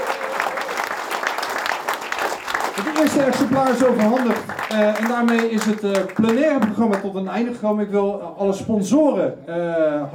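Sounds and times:
audience applause: 0.0 - 7.1
speech: 2.8 - 10.1.

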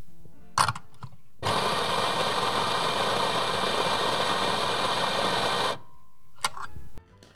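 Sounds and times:
coffee grinder grinding beans: 1.4 - 5.9.

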